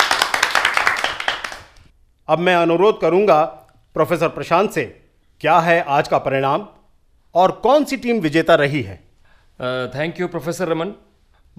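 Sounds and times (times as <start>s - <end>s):
crowd applauding for a quiz team: 0.0s - 1.8s
speech: 2.3s - 9.0s, 9.6s - 11.5s.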